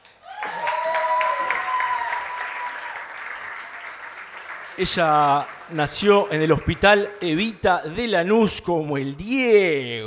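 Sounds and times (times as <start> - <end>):
audience applause: 0.0 - 7.6
speech: 4.8 - 10.0.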